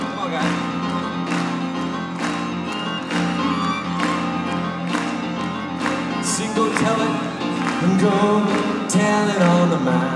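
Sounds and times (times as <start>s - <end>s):
audience clapping hands: 0.0s - 9.9s
speech: 6.6s - 10.1s.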